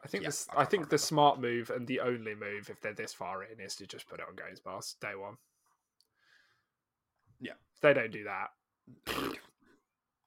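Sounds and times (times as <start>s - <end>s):
speech: 0.0s - 5.5s, 7.4s - 9.5s
big fart: 9.0s - 9.6s.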